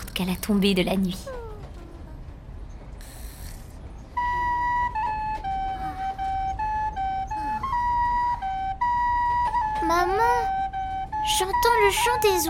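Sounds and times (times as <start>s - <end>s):
speech: 0.2s - 1.4s
flute melody: 1.2s - 2.9s, 4.0s - 12.4s.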